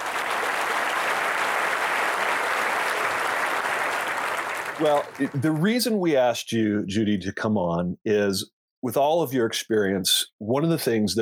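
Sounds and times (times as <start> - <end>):
applause: 0.0 - 5.8
speech: 4.8 - 11.2.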